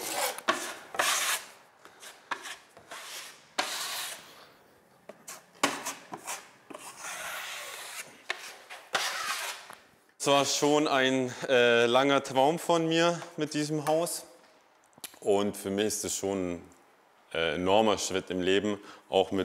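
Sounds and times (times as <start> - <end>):
sanding during interior renovation: 0.0 - 4.3, 5.3 - 9.7
speech: 10.2 - 14.3, 15.2 - 19.4.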